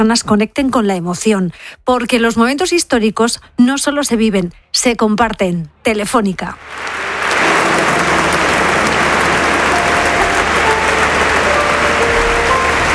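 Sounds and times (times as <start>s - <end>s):
speech: 0.0s - 7.1s
applause in the church of San Agustín in Barcelona: 6.6s - 12.9s.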